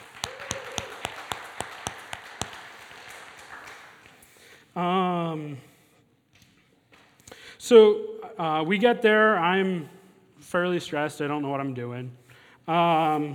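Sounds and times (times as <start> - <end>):
audience clapping: 0.0 - 4.5
speech: 4.8 - 5.7, 7.6 - 13.3.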